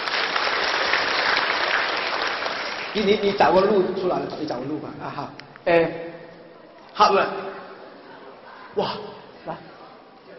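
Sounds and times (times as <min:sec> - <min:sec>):
audience applause: 0:00.0 - 0:03.5
speech: 0:02.9 - 0:06.2, 0:07.0 - 0:07.6, 0:08.8 - 0:09.7.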